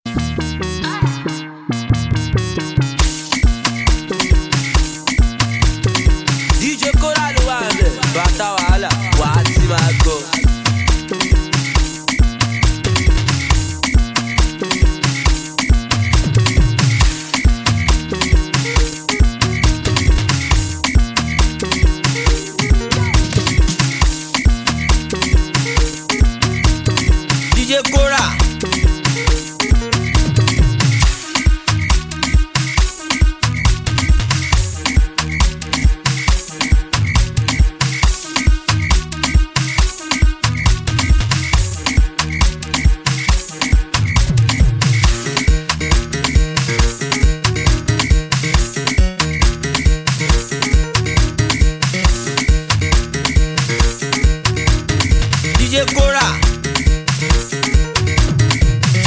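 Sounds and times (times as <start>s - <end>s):
music beat: 0.1s - 59.0s.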